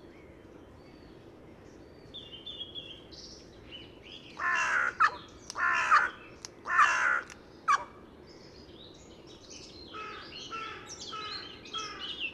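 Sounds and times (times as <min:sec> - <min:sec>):
carrion crow hoarse grating caws: 0:04.4 - 0:07.9, 0:10.0 - 0:12.1.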